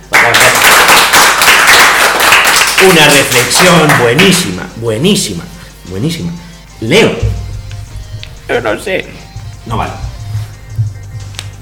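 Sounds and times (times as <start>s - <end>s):
group applauding: 0.0s - 4.6s
speech: 2.8s - 7.4s, 8.5s - 10.0s.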